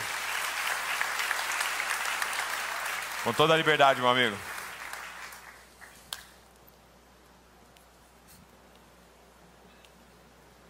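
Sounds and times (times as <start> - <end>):
audience applause: 0.0 - 6.0
speech: 3.2 - 4.5.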